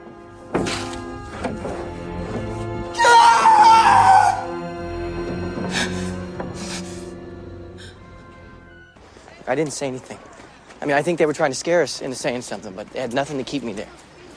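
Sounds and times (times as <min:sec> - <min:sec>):
man screaming: 0:02.9 - 0:04.5
speech: 0:09.5 - 0:14.1.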